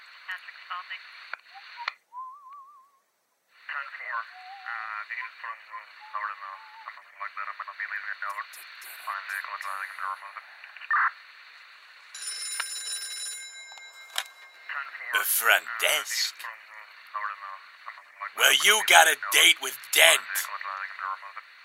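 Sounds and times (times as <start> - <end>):
speech: 0.3 - 2.4, 3.8 - 11.3, 14.8 - 16.6, 18.4 - 20.5
telephone ringing: 12.2 - 16.3.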